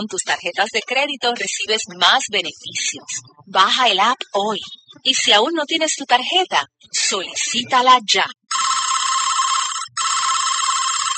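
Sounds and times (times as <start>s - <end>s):
speech: 0.0s - 8.7s
telephone ringing unanswered: 8.5s - 11.1s.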